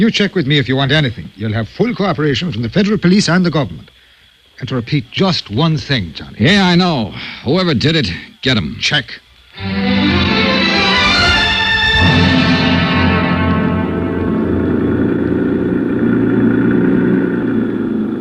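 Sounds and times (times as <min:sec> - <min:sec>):
speech: 0:00.0 - 0:04.0, 0:04.6 - 0:10.2
jeep engine roaring, speeding with accelerator wide open: 0:10.5 - 0:18.2.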